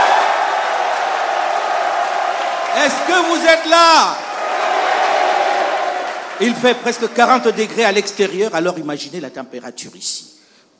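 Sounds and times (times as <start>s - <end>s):
young audience cheering in amphitheatre D of Joseph Ki-Zerbo University: 0.0s - 8.4s
speech: 2.8s - 4.2s, 6.4s - 10.4s.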